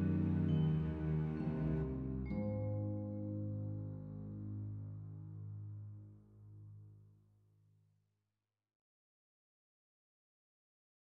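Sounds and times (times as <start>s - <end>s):
guitar: 0.0s - 5.8s.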